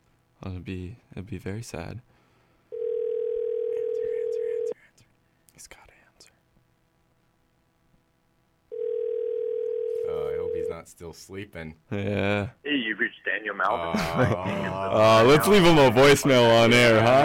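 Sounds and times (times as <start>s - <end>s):
speech: 0.4s - 2.2s, 5.6s - 5.8s, 10.8s - 17.2s
ringback tone of an outgoing telephone call: 2.7s - 4.8s, 8.7s - 10.7s
laughter: 13.7s - 17.2s.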